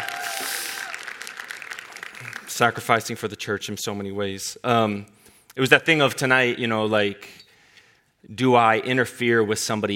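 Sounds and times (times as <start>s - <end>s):
audience applause: 0.0s - 2.6s
speech: 2.6s - 7.4s, 8.2s - 9.9s.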